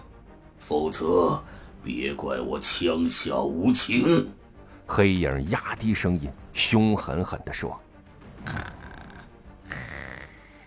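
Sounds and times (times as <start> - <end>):
speech: 0.6 - 8.6
snoring: 8.4 - 10.6.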